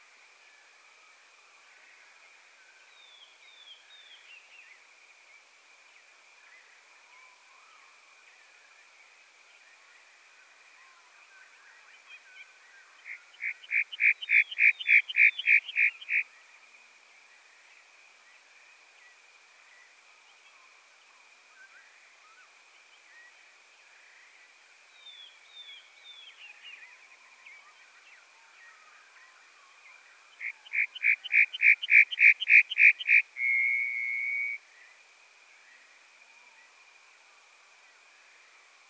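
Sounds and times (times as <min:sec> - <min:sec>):
bunting singing: 0:13.0 - 0:16.2, 0:30.4 - 0:34.6.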